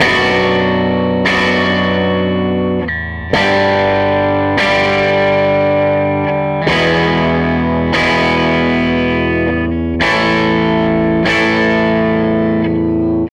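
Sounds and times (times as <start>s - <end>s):
SG electric guitar loop: 0.0s - 13.3s.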